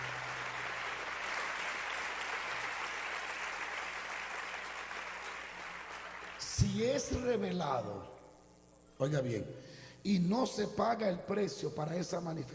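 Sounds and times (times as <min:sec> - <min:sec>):
audience applause: 0:00.0 - 0:06.6
speech: 0:06.6 - 0:08.2, 0:09.0 - 0:12.5.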